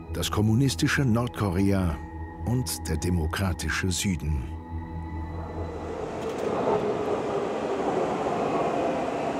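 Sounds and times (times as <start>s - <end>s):
speech: 0.2s - 4.6s
metro train arriving underground in Daegu: 5.2s - 9.3s.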